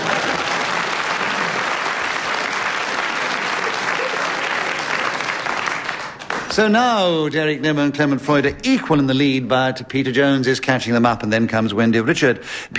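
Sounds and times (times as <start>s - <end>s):
audience applause: 0.0s - 6.8s
speech: 6.6s - 12.7s.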